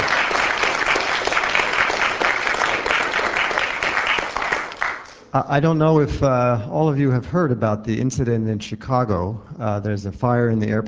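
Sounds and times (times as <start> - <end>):
audience applause: 0.0 - 5.2
speech: 5.3 - 10.8.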